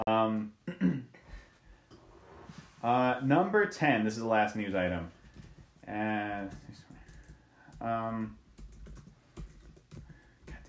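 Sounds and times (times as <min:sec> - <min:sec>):
speech: 0:02.8 - 0:05.2, 0:05.9 - 0:06.9, 0:07.8 - 0:08.4
typing on a computer keyboard: 0:05.2 - 0:10.6.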